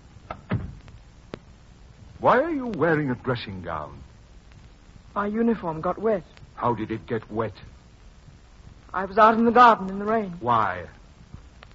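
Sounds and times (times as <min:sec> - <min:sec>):
door shutting with clicks and a soft thud: 0:00.3 - 0:00.8
speech: 0:02.2 - 0:04.1, 0:05.2 - 0:07.8, 0:08.9 - 0:11.0.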